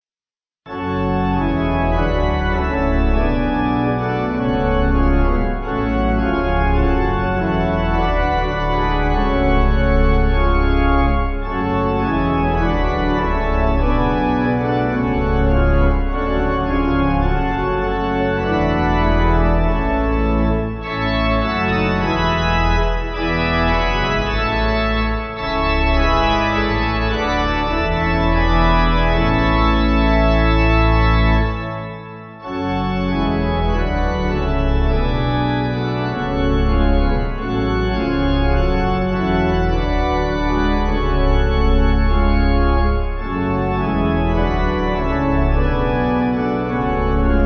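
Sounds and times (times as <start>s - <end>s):
pipe organ music backing: 0.7s - 47.4s.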